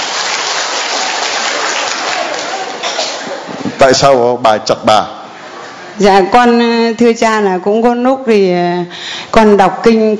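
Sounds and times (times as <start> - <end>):
crowd applause: 0.0 - 3.6
speech: 3.8 - 5.2, 6.0 - 10.1.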